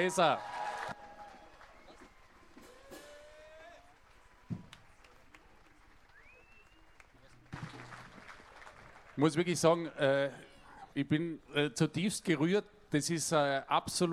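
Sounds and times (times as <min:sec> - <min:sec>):
speech: 0:00.0 - 0:00.5, 0:09.2 - 0:14.1
applause for the tour guide: 0:00.0 - 0:09.5.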